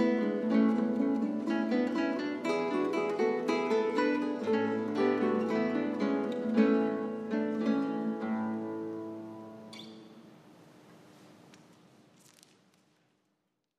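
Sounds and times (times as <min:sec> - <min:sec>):
two lutes playing: 0:00.0 - 0:10.4.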